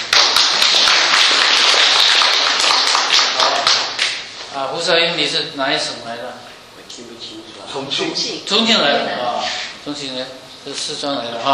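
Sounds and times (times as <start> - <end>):
audience clapping: 0.0 - 4.3
speech: 4.8 - 11.5.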